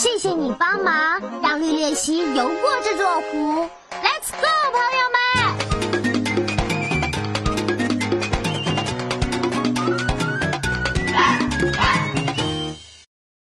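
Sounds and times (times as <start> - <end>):
speech: 0.0 - 5.7
busy musical backing: 0.0 - 12.9
fox yipping barks: 11.1 - 12.2.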